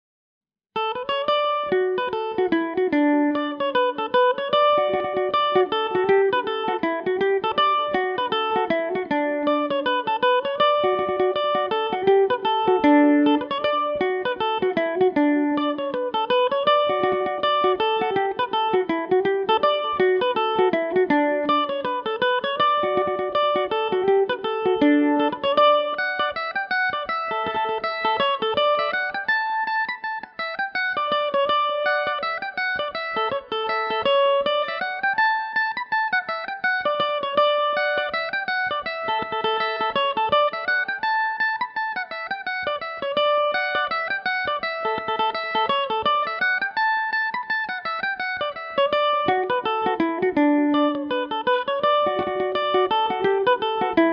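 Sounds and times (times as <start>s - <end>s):
mandolin in D major: 0.8s - 54.1s.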